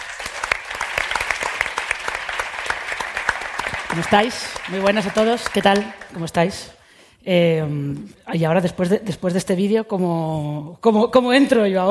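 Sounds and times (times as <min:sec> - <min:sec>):
audience applause: 0:00.0 - 0:06.2
speech: 0:04.0 - 0:11.8.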